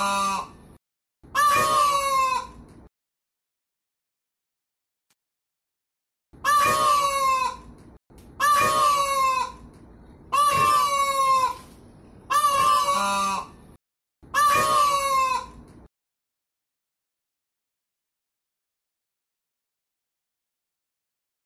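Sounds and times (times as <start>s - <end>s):
peafowl braying calls: 0.0s - 0.6s, 1.3s - 2.6s, 6.4s - 7.7s, 8.4s - 9.7s, 10.3s - 13.6s, 14.3s - 15.6s.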